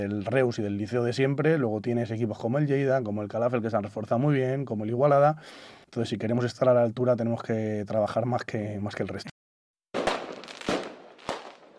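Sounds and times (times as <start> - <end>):
speech: 0.0 - 9.3
firecrackers banging and crackling: 10.0 - 11.7.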